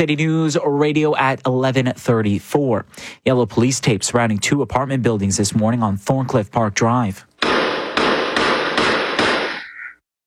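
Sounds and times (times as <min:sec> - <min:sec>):
speech: 0:00.0 - 0:07.3
gunshots from surveillance footage: 0:07.4 - 0:09.8.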